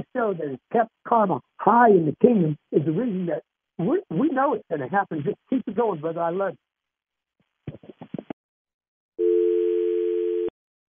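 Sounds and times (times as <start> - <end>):
speech: 0.1 - 6.7
short clicks and thumps of a phone hang-up: 7.4 - 8.4
telephone dial tone after a call is hung up: 9.2 - 10.5.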